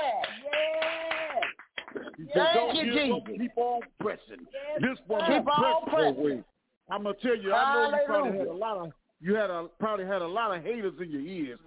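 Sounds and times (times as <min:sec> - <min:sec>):
audience clapping hands in rhythm: 0:00.0 - 0:04.1
speech: 0:02.2 - 0:11.6.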